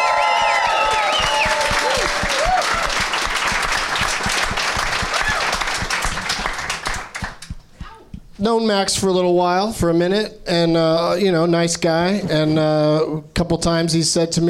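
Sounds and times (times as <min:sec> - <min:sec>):
people whooping: 0:00.0 - 0:03.6, 0:04.9 - 0:05.9
studio audience applause: 0:00.0 - 0:07.5
speech: 0:08.4 - 0:14.4.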